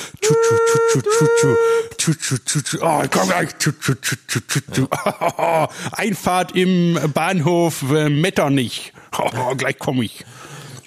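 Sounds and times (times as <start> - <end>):
voice imitating train rail noise: 0.2 - 4.0
laughter: 0.2 - 5.8
speech: 0.5 - 10.5.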